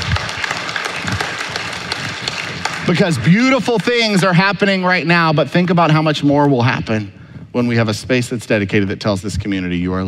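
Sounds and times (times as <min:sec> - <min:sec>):
church audience clapping: 0:00.0 - 0:04.8
speech: 0:02.9 - 0:10.0.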